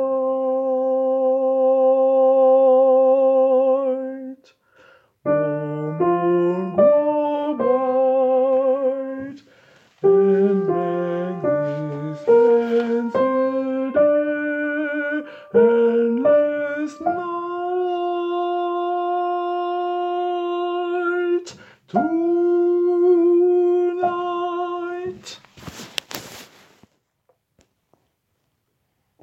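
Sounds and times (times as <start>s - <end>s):
soprano singing: 0.0s - 4.5s, 5.3s - 25.4s.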